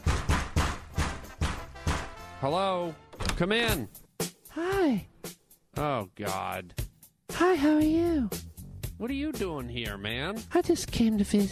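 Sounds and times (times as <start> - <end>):
knocking at the studio door: 0.0 - 2.2
speech: 2.4 - 4.0, 4.6 - 5.1, 5.8 - 6.8, 7.4 - 8.4, 9.0 - 11.4.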